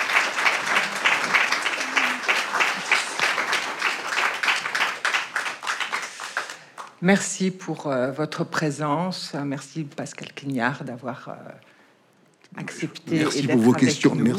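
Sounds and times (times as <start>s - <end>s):
audience applause: 0.0s - 6.9s
speech: 7.0s - 11.7s, 12.5s - 14.3s.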